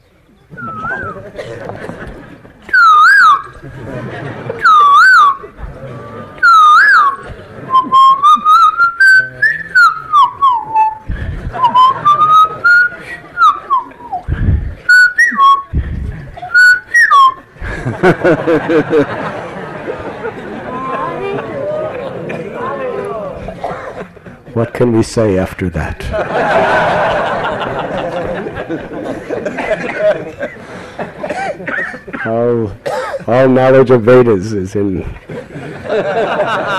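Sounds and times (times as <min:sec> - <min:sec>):
noisy chatter: 0:00.0 - 0:36.7
laughter: 0:00.4 - 0:24.7, 0:26.0 - 0:33.3, 0:35.0 - 0:36.7
person whistling an imitation of a cuckoo: 0:00.6 - 0:01.2, 0:02.7 - 0:03.6, 0:04.6 - 0:05.4, 0:06.4 - 0:15.8, 0:16.4 - 0:17.5
speech: 0:18.5 - 0:19.2, 0:24.8 - 0:27.7, 0:28.7 - 0:29.3, 0:32.2 - 0:35.3.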